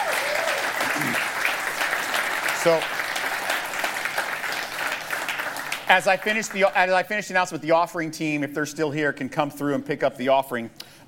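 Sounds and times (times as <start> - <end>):
church audience applauding to welcome two new team members: 0.0 - 7.0
speech: 2.6 - 3.0, 5.9 - 10.8.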